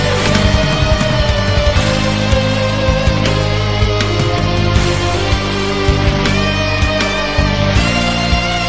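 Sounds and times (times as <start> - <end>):
guitar: 0.0 - 8.6.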